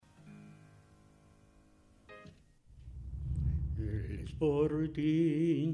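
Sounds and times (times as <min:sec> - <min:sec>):
anthem music: 0:02.7 - 0:05.6.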